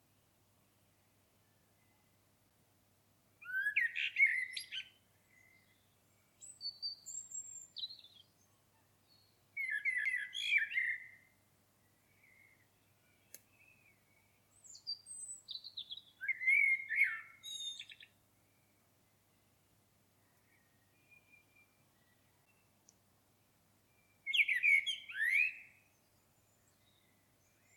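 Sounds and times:
common blackbird singing: 3.4s - 11.3s, 12.0s - 18.7s, 20.2s - 22.7s, 23.9s - 27.7s.

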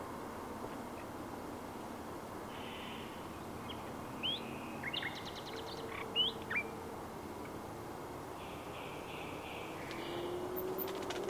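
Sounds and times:
low background noise: 0.0s - 11.2s
common nightingale singing: 2.5s - 6.8s, 8.4s - 11.2s.

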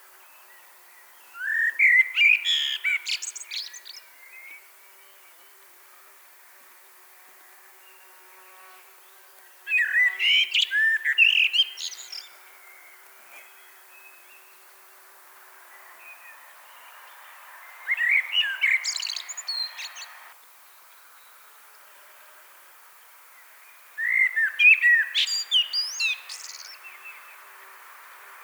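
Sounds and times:
Common blackbird singing: 0.4s - 4.6s, 9.7s - 14.5s, 17.7s - 20.3s, 24.0s - 27.3s.

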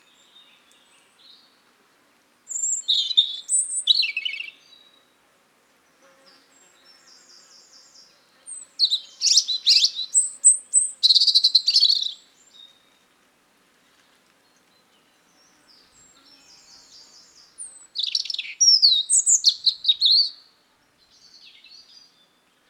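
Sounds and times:
European robin singing: 2.5s - 4.9s, 7.0s - 12.7s, 15.4s - 22.4s.

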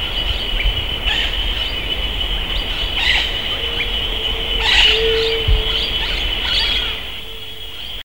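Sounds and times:
bird: 0.0s - 8.0s.

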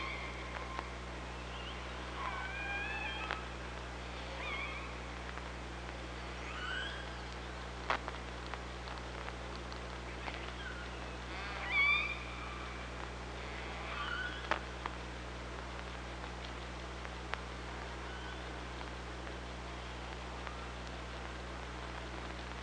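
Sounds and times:
killer whale calls: 0.0s - 3.6s, 4.2s - 5.0s, 6.3s - 7.3s, 10.4s - 14.6s
steady hiss: 0.0s - 22.6s.

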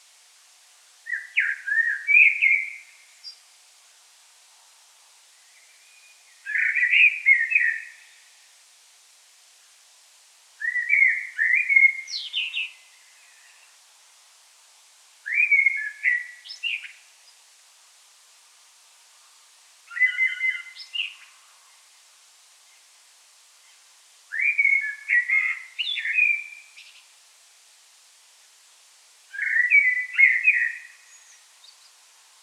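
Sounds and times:
hiss: 0.0s - 32.4s
common blackbird song: 1.0s - 3.4s, 5.3s - 8.3s, 10.6s - 13.8s, 15.2s - 17.4s, 19.9s - 21.8s, 23.6s - 27.1s, 29.3s - 32.0s.

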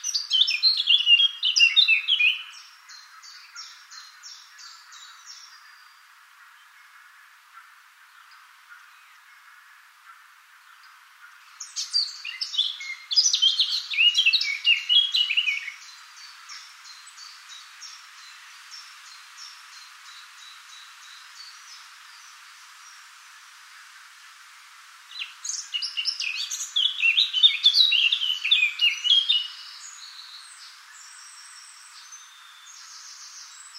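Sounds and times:
Eurasian blackcap warbling song: 0.0s - 23.0s, 25.1s - 33.7s.

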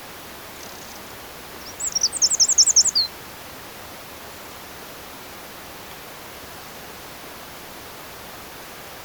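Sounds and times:
steady background hiss: 0.0s - 9.0s
Eurasian wren giving high clipped notes: 0.5s - 3.1s.

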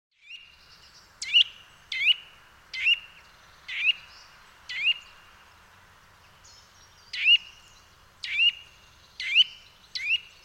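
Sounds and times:
Eurasian nuthatch calling: 1.2s - 5.2s, 6.5s - 10.4s.

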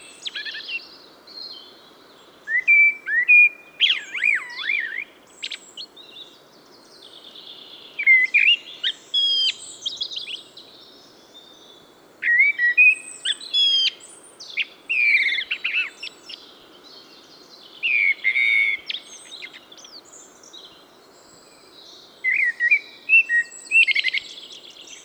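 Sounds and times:
Eurasian blackbird singing warbled whistles and high squeaks: 2.5s - 6.4s, 7.0s - 10.5s, 12.2s - 17.1s, 17.8s - 25.0s.

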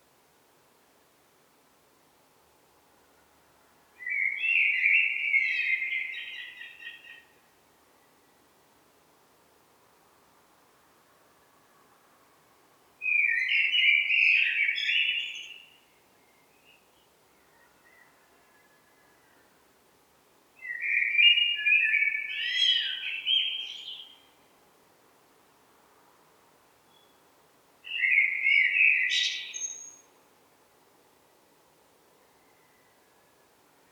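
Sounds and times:
common blackbird warbling song: 4.0s - 7.2s, 13.0s - 19.4s, 20.6s - 24.4s, 27.8s - 30.1s.

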